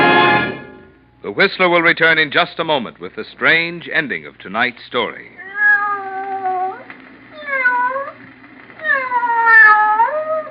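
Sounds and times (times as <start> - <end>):
speech: 1.2 - 5.4
cat meowing sound effect: 5.4 - 10.4.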